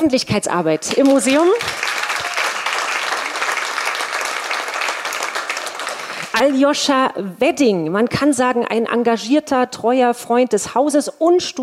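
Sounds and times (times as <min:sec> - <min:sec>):
speech: 0:00.0 - 0:01.9, 0:06.4 - 0:11.6
audience applause: 0:01.1 - 0:06.5.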